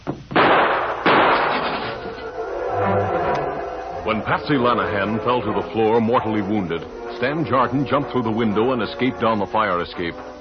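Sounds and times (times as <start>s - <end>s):
lingering noisy rumble after gunshots: 0.0s - 10.3s
gunshots in a radio drama: 0.4s - 2.2s
speech: 4.1s - 10.3s.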